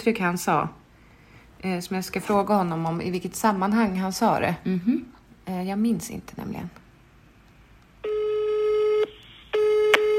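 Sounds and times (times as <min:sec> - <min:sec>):
speech: 0:00.0 - 0:00.8, 0:01.6 - 0:06.8
telephone ringing tone while calling someone: 0:08.0 - 0:10.1.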